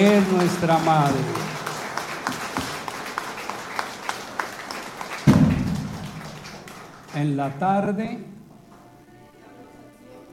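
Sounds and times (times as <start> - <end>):
speech: 0.0 - 1.5, 7.2 - 8.4
applause from a festival crowd: 0.0 - 7.6.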